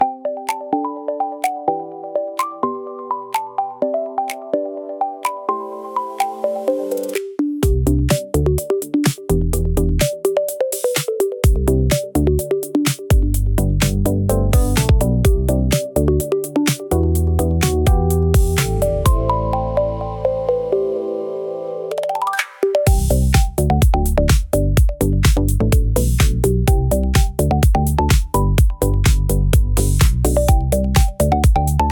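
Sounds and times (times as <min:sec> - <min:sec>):
soft electro music for vlogs: 0:00.0 - 0:31.9.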